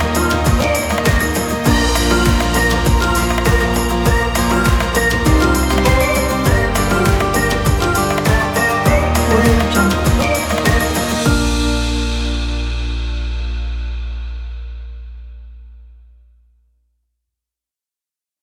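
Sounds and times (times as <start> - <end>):
uplifting folk music: 0.0 - 14.1.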